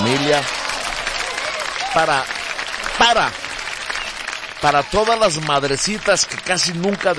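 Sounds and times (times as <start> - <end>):
audience applause: 0.0 - 7.1
speech: 0.3 - 0.6, 2.0 - 3.4, 4.6 - 7.1
swooping harmonic calls: 3.3 - 4.4.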